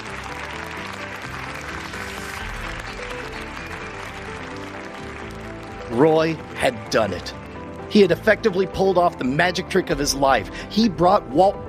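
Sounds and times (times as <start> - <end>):
crowd cheering and applauding: 0.0 - 8.7
speech: 5.9 - 11.6.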